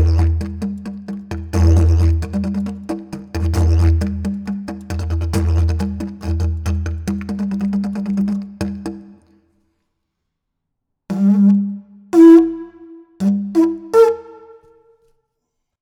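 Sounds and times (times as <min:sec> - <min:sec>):
didgeridoo: 0:00.0 - 0:09.0, 0:11.1 - 0:14.6.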